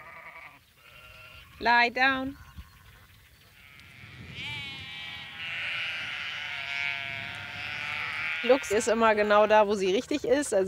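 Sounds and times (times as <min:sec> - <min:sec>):
flock of sheep bleating: 0:00.0 - 0:01.7, 0:03.6 - 0:10.0
speech: 0:01.6 - 0:02.4, 0:08.4 - 0:10.6.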